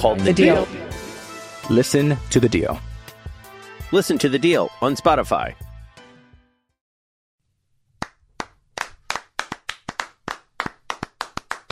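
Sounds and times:
speech: 0.0s - 1.0s, 1.6s - 2.9s, 3.9s - 5.6s
clapping applause: 8.0s - 11.7s.

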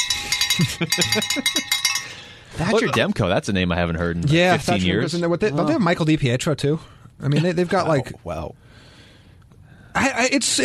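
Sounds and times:
bell ringing: 0.0s - 2.9s
speech: 0.6s - 1.8s, 2.5s - 8.6s, 10.0s - 10.6s.

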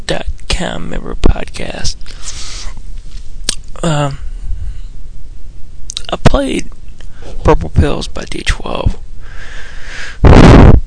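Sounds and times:
speech: 0.1s - 2.4s, 3.8s - 4.3s, 6.1s - 6.8s, 7.4s - 9.0s, 10.2s - 10.7s
breathing into the microphone: 2.0s - 3.3s, 4.2s - 5.0s, 7.0s - 7.4s, 9.2s - 10.3s.

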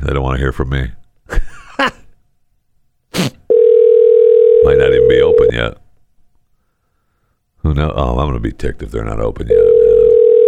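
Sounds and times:
speech: 0.0s - 1.0s, 1.8s - 2.0s, 5.6s - 5.8s, 7.6s - 10.0s
telephone ringing: 3.5s - 5.6s, 9.5s - 10.4s.

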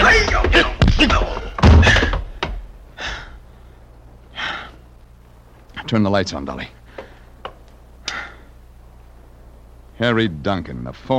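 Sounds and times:
table shoved with heavy thuds and knocks: 0.0s - 2.6s
sharp breathy gasps: 3.0s - 4.8s, 8.0s - 8.6s
speech: 5.9s - 6.8s, 10.0s - 11.1s.

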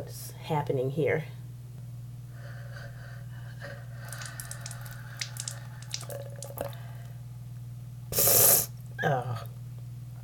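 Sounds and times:
speech: 0.0s - 1.4s
low steady hum: 0.0s - 10.2s
faint drips: 4.0s - 7.2s
saline rinse bottle squeezed into a nostril: 8.2s - 8.8s.

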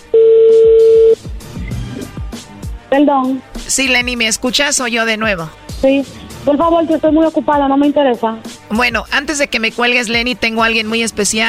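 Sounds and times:
incoming phone call electronic tone: 0.0s - 1.2s
speech: 2.9s - 11.4s.

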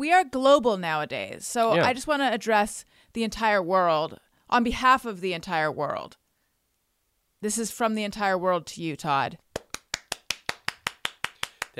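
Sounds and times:
speech: 0.0s - 6.2s, 7.4s - 9.4s
round of applause: 9.6s - 11.7s.

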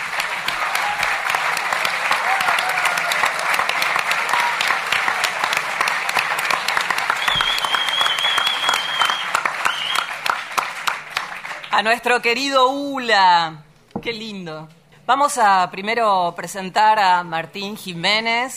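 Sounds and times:
crowd applauding: 0.0s - 11.8s
whistles and cheers: 0.6s - 3.6s, 7.1s - 10.3s
speech: 11.8s - 18.5s.

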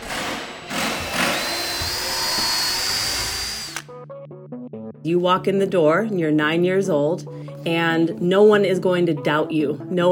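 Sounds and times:
power drills and drivers assembling furniture: 0.0s - 3.9s
speech: 5.0s - 10.0s.

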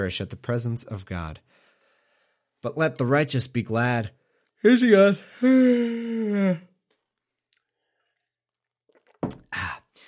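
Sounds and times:
speech: 0.0s - 1.6s, 2.6s - 6.7s
person drinking water and swallowing: 6.7s - 10.0s.

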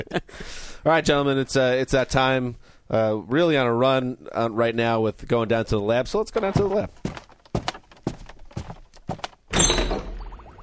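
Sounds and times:
speech: 0.0s - 7.0s
footsteps: 6.3s - 9.5s
door slamming shut: 9.5s - 10.3s.

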